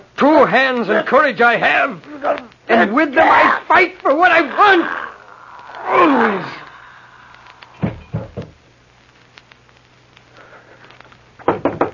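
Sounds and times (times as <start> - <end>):
speech: 0.4 - 5.0, 5.9 - 6.6
knocking on a door: 7.8 - 8.6, 11.4 - 11.9.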